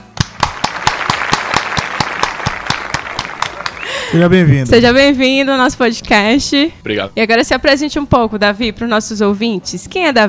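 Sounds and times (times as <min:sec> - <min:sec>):
audience applause for guest: 0:00.4 - 0:04.1
speech: 0:04.1 - 0:10.2.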